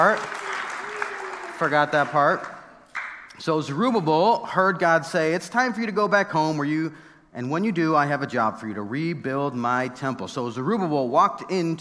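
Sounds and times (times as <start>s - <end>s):
speech: 0.0s - 0.4s, 1.6s - 2.6s, 3.4s - 11.7s
audience clapping: 0.0s - 3.4s.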